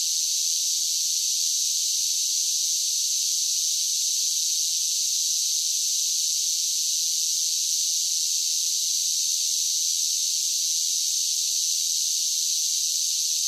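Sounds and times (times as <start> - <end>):
cicadas droning in a high buzz: 0.0 - 13.4.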